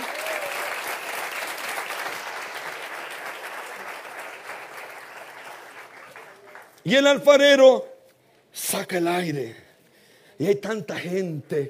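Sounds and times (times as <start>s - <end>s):
audience applause: 0.0s - 6.8s
speech: 6.8s - 7.9s, 8.6s - 9.6s, 10.4s - 11.6s.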